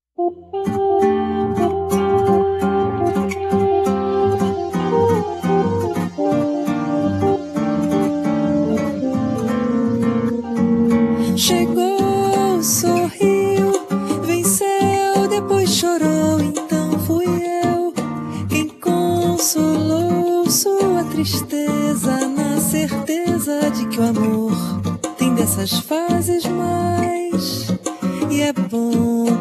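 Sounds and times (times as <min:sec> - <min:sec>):
Brazilian music: 0:00.2 - 0:29.3.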